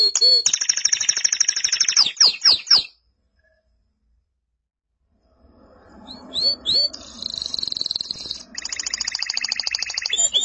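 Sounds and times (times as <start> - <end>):
canary song: 0.0 - 3.1, 5.9 - 10.4.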